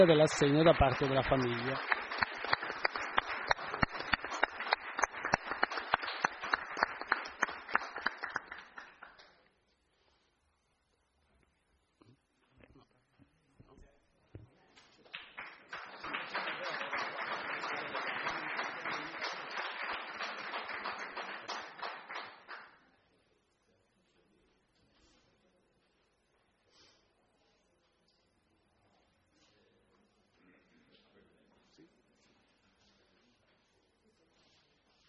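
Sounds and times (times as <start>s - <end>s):
speech: 0.0s - 2.0s
audience applause: 0.0s - 9.3s, 15.1s - 22.7s.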